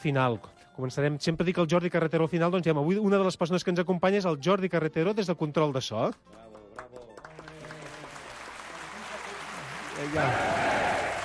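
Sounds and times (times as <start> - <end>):
speech: 0.0 - 6.9, 10.0 - 10.8
applause: 6.0 - 11.2.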